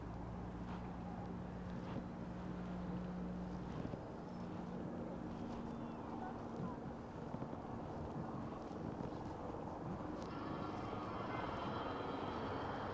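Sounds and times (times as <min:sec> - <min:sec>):
low engine drone: 0:00.0 - 0:12.9
traffic roar between Harlem and the Bronx: 0:00.0 - 0:12.9
wind on a bike ride: 0:00.0 - 0:12.9
bright whine: 0:10.2 - 0:12.9.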